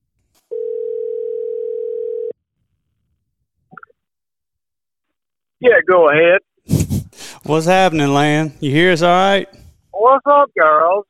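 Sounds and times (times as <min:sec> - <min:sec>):
telephone dial tone while placing a call: 0:00.5 - 0:02.4
speech: 0:05.6 - 0:06.5, 0:07.5 - 0:11.0.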